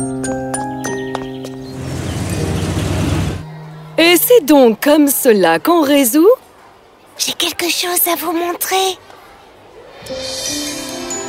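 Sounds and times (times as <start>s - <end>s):
bus engine idling: 1.7s - 3.9s
speech: 4.4s - 6.5s, 7.2s - 9.1s.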